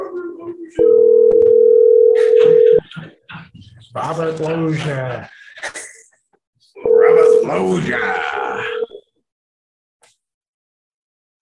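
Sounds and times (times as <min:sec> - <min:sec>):
telephone dial tone while calling back on the phone: 0:00.8 - 0:02.8
speech: 0:04.0 - 0:05.8, 0:07.4 - 0:08.7.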